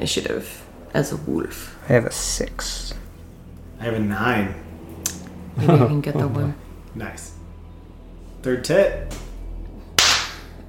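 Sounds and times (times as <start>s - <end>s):
speech: 0.0s - 3.0s, 3.8s - 4.7s, 5.6s - 7.4s, 8.4s - 9.2s
low hum: 0.0s - 10.6s
self high-five hand slap: 10.0s - 10.5s.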